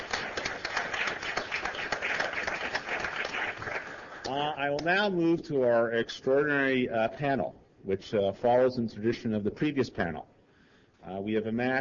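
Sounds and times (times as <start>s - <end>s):
crowd applauding: 0.0s - 4.5s
speech: 4.3s - 10.3s, 11.0s - 11.8s.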